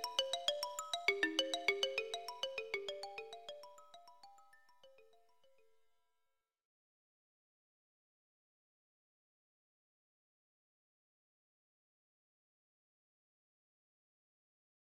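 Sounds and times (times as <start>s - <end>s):
African xylophone: 0.0s - 5.6s.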